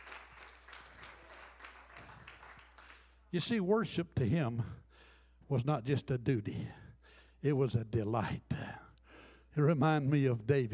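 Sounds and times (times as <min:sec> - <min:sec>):
audience clapping in praise: 0:00.0 - 0:03.6
speech: 0:03.3 - 0:04.8, 0:05.5 - 0:06.8, 0:07.4 - 0:08.8, 0:09.5 - 0:10.7.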